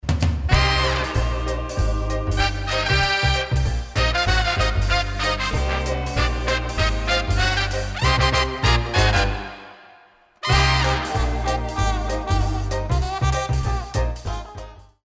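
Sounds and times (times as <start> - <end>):
jazz music: 0.4 - 15.0.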